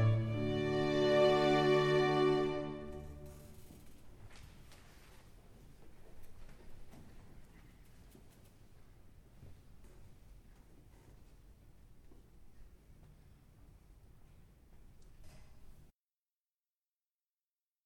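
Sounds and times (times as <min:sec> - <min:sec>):
concert choir singing: 0:00.0 - 0:03.1.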